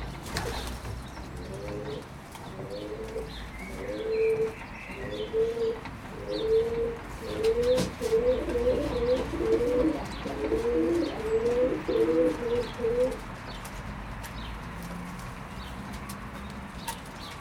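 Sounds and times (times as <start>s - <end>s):
pigeons cooing: 0.0s - 13.2s.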